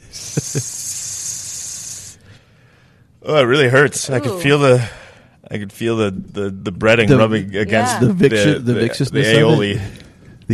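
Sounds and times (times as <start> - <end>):
whistling exhale through nose: 0.1 - 2.3
speech: 0.5 - 0.8, 3.2 - 10.5.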